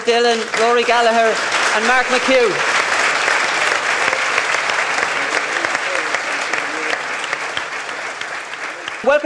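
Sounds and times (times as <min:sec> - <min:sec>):
speech: 0:00.0 - 0:02.7, 0:09.0 - 0:09.2
audience applause at a live Gaelic football panel show in Westport: 0:00.0 - 0:09.2.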